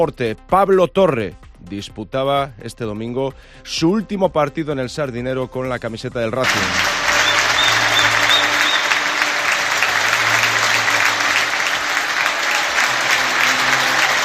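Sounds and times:
speech: 0:00.0 - 0:07.0
stadium crowd ovation at the Sardinero: 0:06.4 - 0:14.2.

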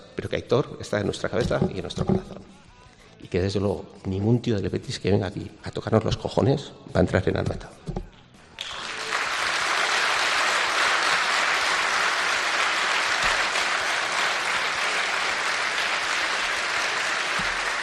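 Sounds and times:
speech: 0:00.2 - 0:02.6, 0:03.2 - 0:08.1
stadium crowd ovation: 0:08.5 - 0:17.8.

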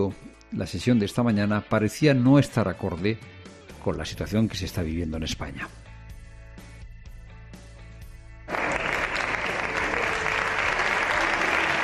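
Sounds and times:
speech: 0:00.0 - 0:05.8
applause in the Congreso: 0:08.5 - 0:11.8.

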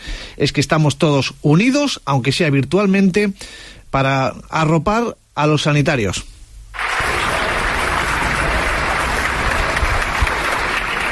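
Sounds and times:
speech: 0:00.4 - 0:06.3
neighbours applauding from balconies in Mallorca: 0:06.8 - 0:11.1.

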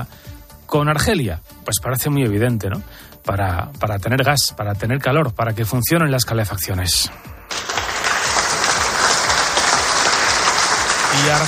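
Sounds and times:
speech: 0:00.0 - 0:07.3, 0:11.2 - 0:11.4
recorded applause for a president: 0:07.5 - 0:11.4.

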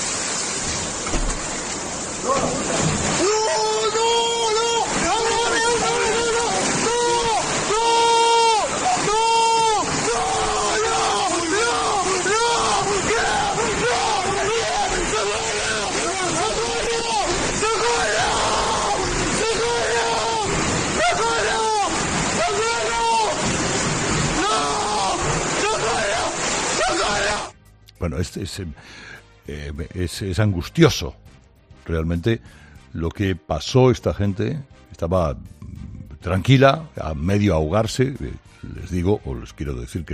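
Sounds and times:
floodwater pushing through collapsing wall: 0:00.0 - 0:27.6
speech: 0:28.1 - 0:31.2, 0:31.9 - 0:40.1.

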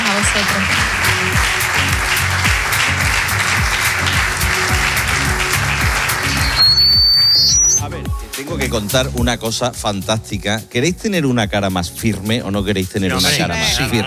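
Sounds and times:
audience applause: 0:00.0 - 0:07.8
speech: 0:08.6 - 0:14.0.

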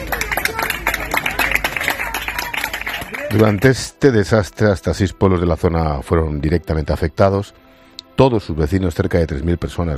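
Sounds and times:
group applauding: 0:00.0 - 0:03.9
speech: 0:03.3 - 0:07.6, 0:08.2 - 0:09.9.

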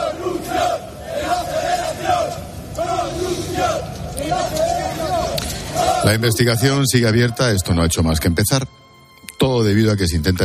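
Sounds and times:
football fans shouting chants in stadium: 0:00.0 - 0:06.7
speech: 0:06.1 - 0:10.4.

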